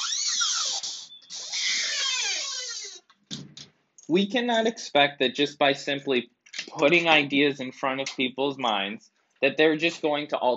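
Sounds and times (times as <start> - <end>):
loud door opening: 1.4 - 3.6
speech: 4.1 - 10.5.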